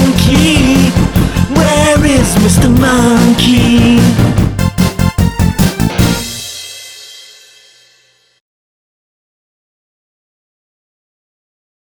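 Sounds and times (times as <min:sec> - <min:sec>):
song: 0:00.0 - 0:08.1.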